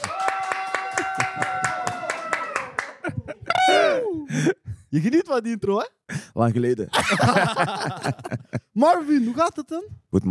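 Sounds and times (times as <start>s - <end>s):
audience applause: 0.0s - 3.4s
laughter: 2.7s - 4.6s, 6.9s - 8.8s
speech: 4.9s - 10.2s.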